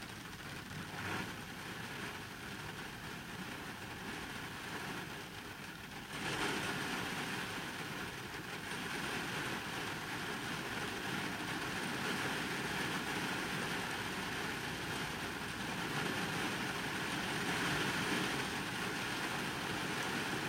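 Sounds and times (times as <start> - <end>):
rain drumming on the roof and glass of a car: 0.0 - 20.4.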